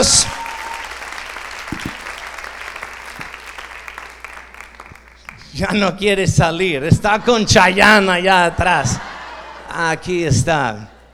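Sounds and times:
audience applause: 0.0 - 5.5
speech: 5.6 - 9.1, 9.7 - 11.0
laughter: 6.7 - 11.1.

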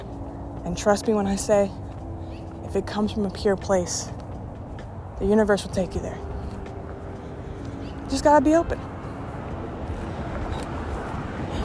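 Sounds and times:
cars driving by: 0.0 - 11.6
speech: 0.6 - 1.8, 2.7 - 4.2, 5.2 - 6.3, 8.1 - 8.9.

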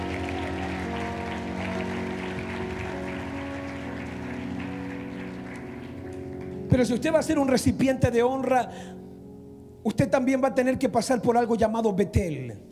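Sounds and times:
audience applauding: 0.0 - 6.9
speech: 6.7 - 9.1, 9.8 - 12.6.

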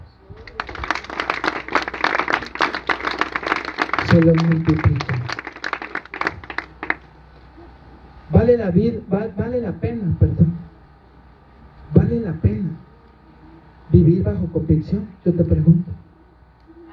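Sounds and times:
audience applause: 0.5 - 7.0
speech: 4.1 - 5.2, 8.4 - 10.4, 12.1 - 12.6, 14.5 - 15.9.

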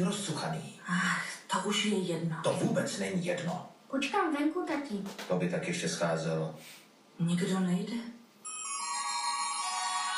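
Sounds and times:
speech: 0.0 - 8.2
doorbell ringing: 8.4 - 10.1.

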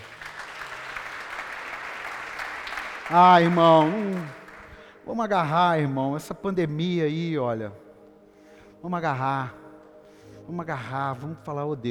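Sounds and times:
audience applauding: 0.0 - 5.0
speech: 3.1 - 4.4, 5.1 - 7.8, 8.8 - 9.6, 10.5 - 11.8.

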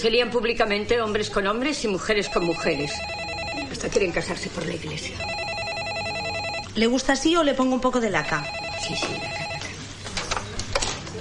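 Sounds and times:
speech: 0.0 - 3.2, 3.8 - 5.4, 6.8 - 9.4
telephone ringing with electronic tone: 2.2 - 3.8, 5.2 - 6.8, 8.2 - 9.8.

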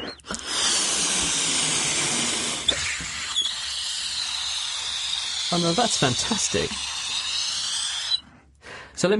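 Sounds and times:
brief knocks and squeaks: 0.0 - 0.4, 2.1 - 8.2
air escaping from deflating balloon under floating CD: 0.0 - 8.4
speech: 5.6 - 6.9, 9.0 - 9.1.

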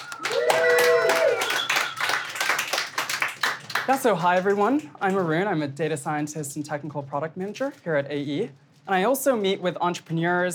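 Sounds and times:
audience clapping to welcome speakers at a data science talk: 0.0 - 5.3
speech: 3.9 - 10.5.

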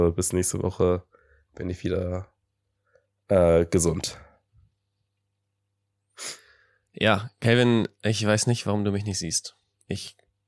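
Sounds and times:
speech: 0.0 - 2.4, 3.3 - 4.3, 6.2 - 6.4, 7.0 - 10.2
person sniffling from a cold: 6.2 - 6.8.

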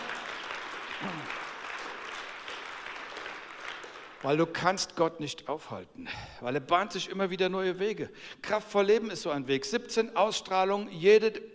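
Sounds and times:
crowd audience applause: 0.0 - 4.4
speech: 1.0 - 1.4, 4.2 - 11.5.

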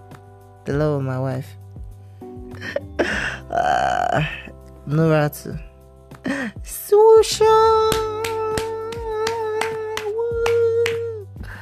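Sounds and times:
speech: 0.7 - 1.6, 3.5 - 5.7, 6.6 - 8.2
steady hand clapping: 7.8 - 11.2.

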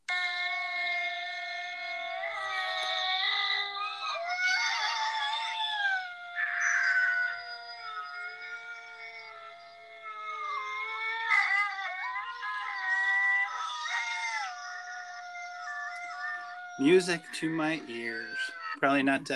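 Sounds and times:
gray wolf howling: 0.1 - 19.2
speech: 16.8 - 19.3.

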